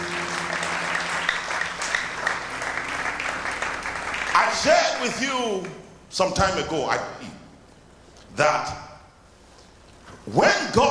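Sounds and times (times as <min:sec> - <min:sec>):
crowd clapping: 0:00.0 - 0:06.0
speech: 0:04.5 - 0:07.3, 0:08.4 - 0:08.8, 0:10.3 - 0:10.8.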